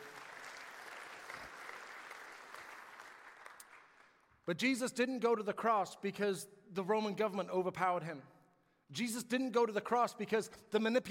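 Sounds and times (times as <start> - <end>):
audience clapping: 0.0 - 4.4
speech: 4.5 - 8.3, 8.9 - 11.0.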